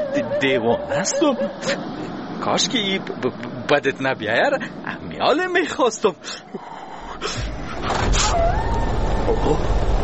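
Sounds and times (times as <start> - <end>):
speech: 0.2 - 7.5, 9.3 - 9.9
tractor engine: 7.1 - 10.0.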